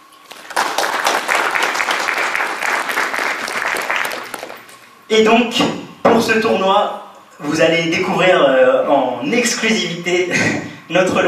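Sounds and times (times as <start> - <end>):
audience applause: 0.3 - 4.9
speech: 5.1 - 11.2.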